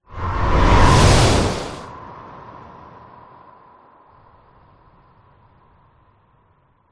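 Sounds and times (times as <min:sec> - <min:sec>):
whoosh: 0:00.0 - 0:02.0.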